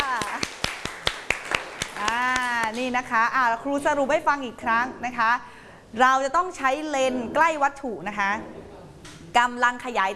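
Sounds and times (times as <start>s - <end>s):
classroom clapping for a student: 0.0s - 2.9s
speech: 2.7s - 8.6s, 9.3s - 10.1s.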